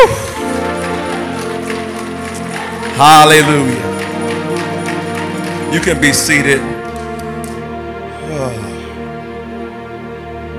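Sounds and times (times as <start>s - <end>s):
church congregation clapping hands in praise: 0.0s - 8.0s
sustained instrumental music: 0.0s - 10.5s
speech: 3.0s - 3.9s, 5.7s - 6.8s.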